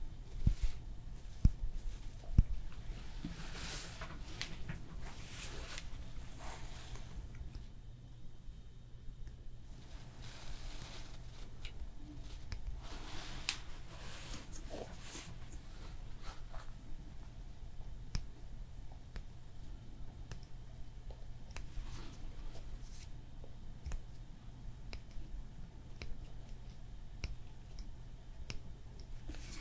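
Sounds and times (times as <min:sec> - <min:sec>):
low steady hum: 0:00.0 - 0:29.6
hand massage rubbing and brushing: 0:00.4 - 0:07.2, 0:09.8 - 0:11.6, 0:12.2 - 0:16.8.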